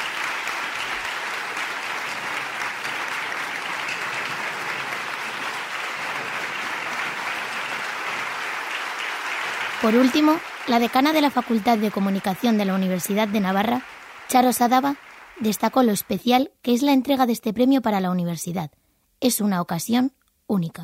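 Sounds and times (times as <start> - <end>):
energetic applause in a lecture hall: 0.0 - 16.3
speech: 9.8 - 20.8.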